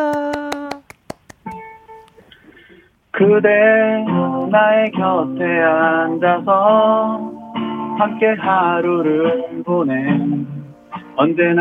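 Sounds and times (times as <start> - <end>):
hand clapping: 0.0 - 2.2
speech: 3.2 - 7.2, 8.0 - 10.6, 11.2 - 11.5.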